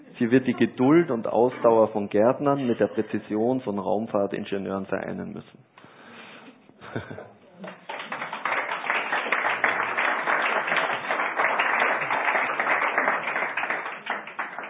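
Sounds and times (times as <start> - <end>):
speech: 0.2 - 5.7, 6.9 - 7.8
audience applause: 7.6 - 14.6.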